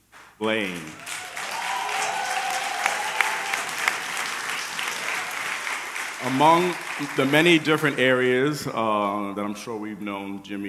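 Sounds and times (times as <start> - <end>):
speech: 0.4 - 1.1, 6.2 - 10.6
audience applause: 0.4 - 8.7.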